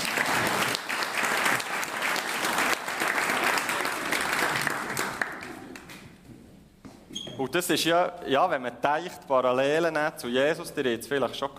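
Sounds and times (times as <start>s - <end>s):
crowd applauding: 0.0s - 6.1s
speech: 7.5s - 11.5s.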